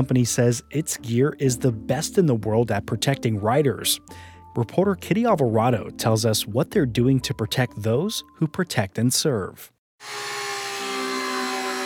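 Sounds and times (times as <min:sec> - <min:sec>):
speech: 0:00.0 - 0:10.4
cutting machine cutting Kevlar mesh at Motorport USA in Escondido: 0:10.0 - 0:11.8.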